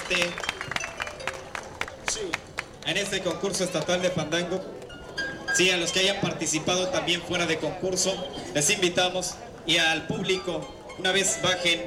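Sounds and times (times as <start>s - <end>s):
audience clapping at a state fandango dance contest: 0.0s - 4.2s
crowd chatter and voices: 0.0s - 11.8s
speech: 0.1s - 0.6s, 2.2s - 4.8s, 5.5s - 11.8s.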